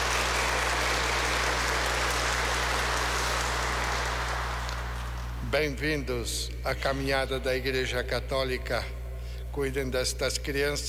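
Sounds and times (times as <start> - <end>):
audience applauding: 0.0 - 5.4
speech: 5.5 - 9.0, 9.6 - 10.8.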